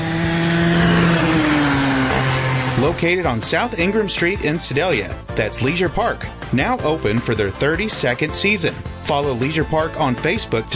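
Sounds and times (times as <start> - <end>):
go-kart engine revving on a race track: 0.0 - 3.7
speech: 2.9 - 10.7.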